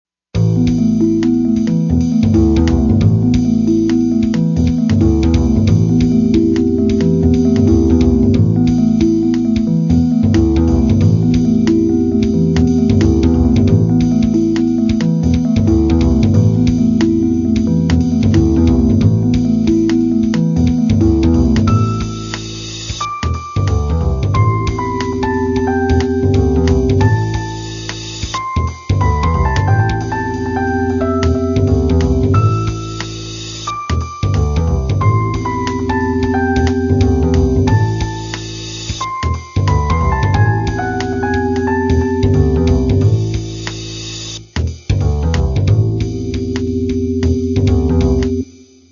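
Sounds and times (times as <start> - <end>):
ambient music: 0.4 - 48.5.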